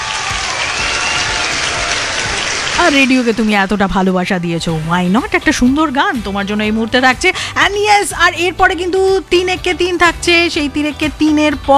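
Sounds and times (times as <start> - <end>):
applause as a reward for a listener: 0.0 - 3.5
speech: 2.9 - 11.7.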